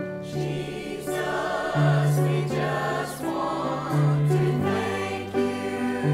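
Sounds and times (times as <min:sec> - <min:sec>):
choir singing: 0:00.2 - 0:06.1.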